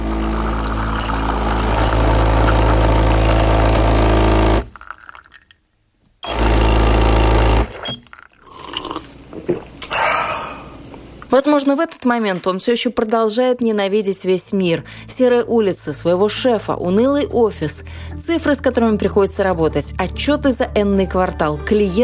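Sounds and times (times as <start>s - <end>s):
coffee maker brewing with mechanical buzz: 0.0s - 5.0s, 6.2s - 8.0s
speech: 11.4s - 22.0s.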